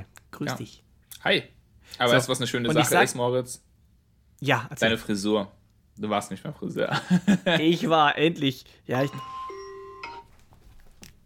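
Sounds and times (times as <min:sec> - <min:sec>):
speech: 0:00.4 - 0:03.7, 0:04.4 - 0:09.4
laughter: 0:06.9 - 0:07.9
alarm clock ringing: 0:09.0 - 0:10.3.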